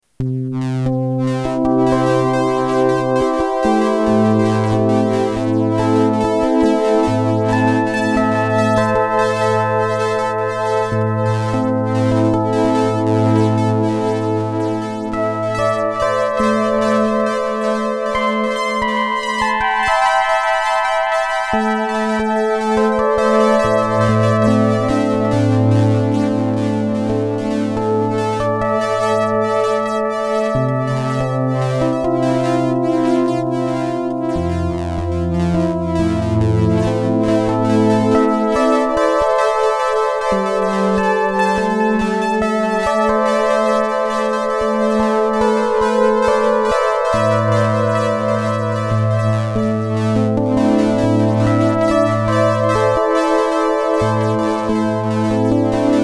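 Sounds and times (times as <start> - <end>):
synth: 0.6 - 56.0.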